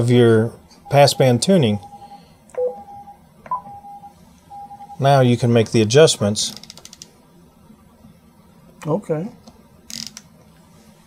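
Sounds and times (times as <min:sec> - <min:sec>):
speech: 0:00.0 - 0:01.9, 0:05.0 - 0:06.6, 0:08.8 - 0:09.4
radio transceiver confirmation beep: 0:00.9 - 0:05.0.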